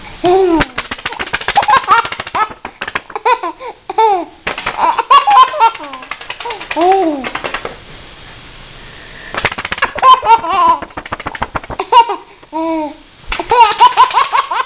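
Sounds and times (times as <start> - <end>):
baby: 0.2 - 7.7, 9.8 - 11.0, 11.7 - 14.6.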